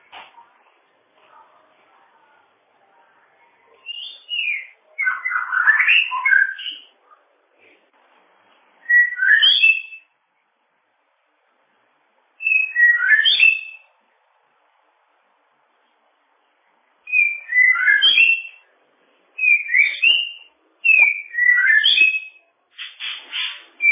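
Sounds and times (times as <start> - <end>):
bird song: 3.8 - 7.0, 8.8 - 10.2, 12.4 - 14.0, 17.1 - 18.7, 19.4 - 23.9.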